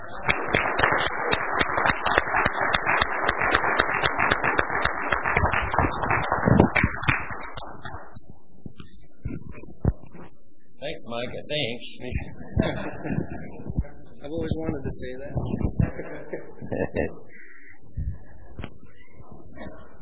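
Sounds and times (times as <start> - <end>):
laughter: 0.0 - 7.6, 12.3 - 14.8, 15.4 - 17.8
audience applause: 0.0 - 8.2
speech: 11.3 - 17.2.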